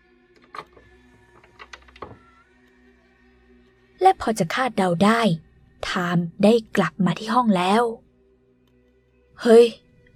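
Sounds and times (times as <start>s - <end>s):
room door opening with mechanical clicks and latch squeak: 1.4s - 2.2s
speech: 4.0s - 8.0s, 9.4s - 9.8s.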